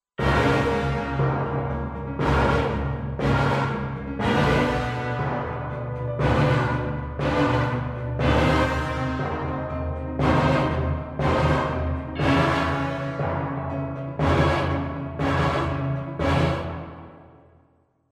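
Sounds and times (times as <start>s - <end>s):
orchestra: 0.2s - 17.5s.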